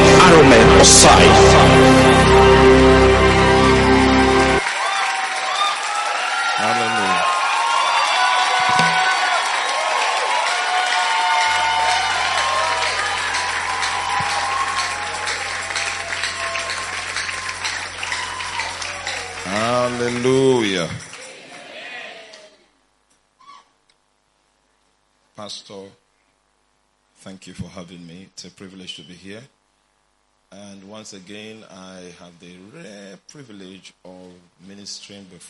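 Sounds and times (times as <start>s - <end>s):
audience clapping to welcome an apostle at a church gathering: 0.0s - 21.8s
church crowd cheering and shouting: 0.0s - 22.6s
speech: 0.8s - 1.9s, 25.5s - 26.0s, 27.2s - 29.6s, 30.5s - 35.4s.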